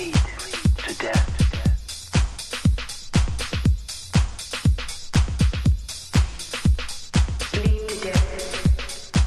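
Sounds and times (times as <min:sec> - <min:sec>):
big beat music: 0:00.0 - 0:09.2.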